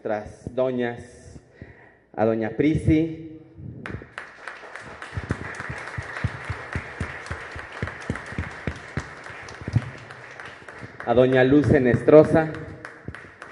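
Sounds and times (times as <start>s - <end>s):
speech: 0.0s - 1.2s, 2.2s - 4.0s, 11.1s - 12.7s
audience applause: 4.1s - 13.5s.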